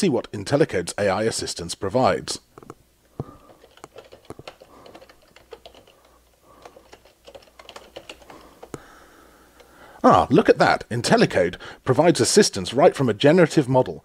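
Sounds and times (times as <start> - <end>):
speech: 0.0 - 2.8, 10.0 - 14.0
typing Python code on a computer keyboard: 2.6 - 8.8.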